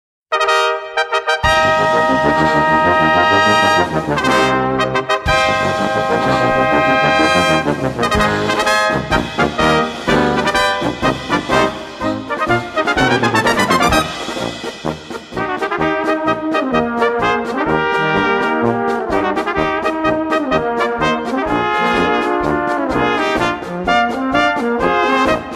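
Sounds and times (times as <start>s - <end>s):
brass band music: 0.3s - 25.5s.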